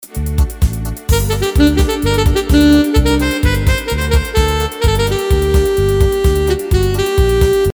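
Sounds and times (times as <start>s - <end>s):
saxophone: 1.1s - 7.7s.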